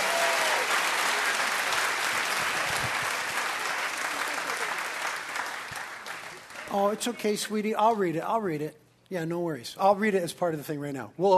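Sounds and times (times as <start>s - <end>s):
round of applause: 0.0s - 7.2s
speech: 6.7s - 11.3s.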